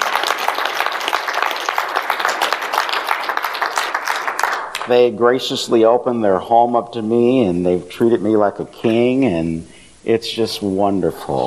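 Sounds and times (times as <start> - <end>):
audience round of applause: 0.0 - 4.9
speech: 4.9 - 11.4.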